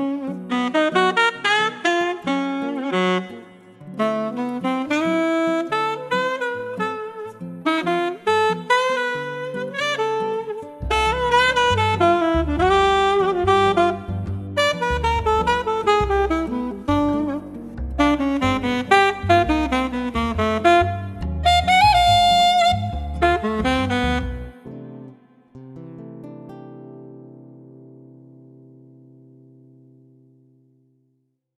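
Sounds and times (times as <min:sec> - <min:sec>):
classic jazz music: 0:00.0 - 0:25.2.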